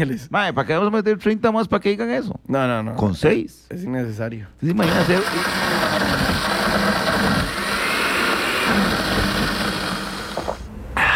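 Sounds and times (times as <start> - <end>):
speech: 0.0 - 6.9
blender grinding ice and frozen cappuccino mix: 4.8 - 10.7.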